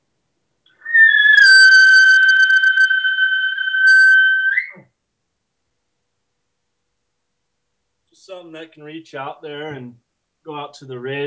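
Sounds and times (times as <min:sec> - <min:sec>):
high-pitched hunting locator call: 0:00.9 - 0:04.7
speech: 0:08.4 - 0:11.2.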